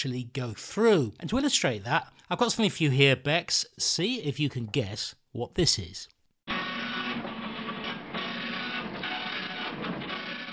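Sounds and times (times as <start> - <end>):
speech: 0.0 - 6.2
telex machine printing: 6.8 - 10.5.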